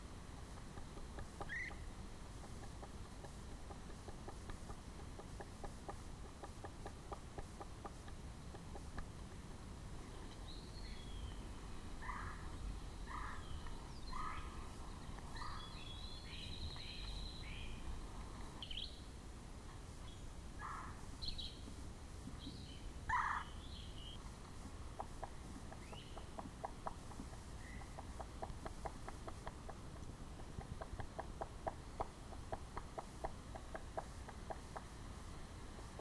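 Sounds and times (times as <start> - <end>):
birds at Indian Springs: 0.0 - 19.2, 20.0 - 35.9
Red-bellied Woodpecker: 0.3 - 9.2, 10.2 - 17.8, 20.1 - 21.7, 22.4 - 24.2, 24.8 - 35.0.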